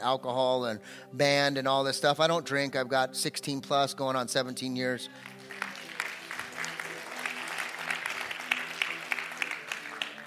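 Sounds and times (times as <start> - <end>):
speech: 0.0 - 5.3
audience applause: 5.2 - 10.2.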